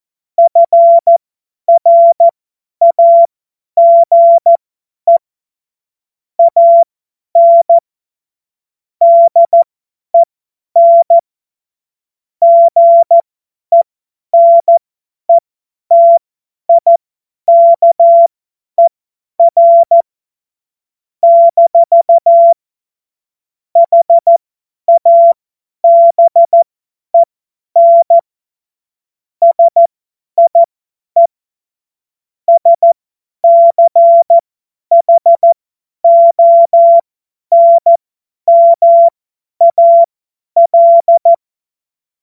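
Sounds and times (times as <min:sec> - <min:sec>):
CW Morse code beeps: 0:00.4 - 0:05.2, 0:06.4 - 0:07.8, 0:09.0 - 0:11.2, 0:12.4 - 0:13.8, 0:14.4 - 0:20.0, 0:21.2 - 0:22.6, 0:23.8 - 0:26.6, 0:27.2 - 0:28.2, 0:29.4 - 0:31.3, 0:32.5 - 0:41.4.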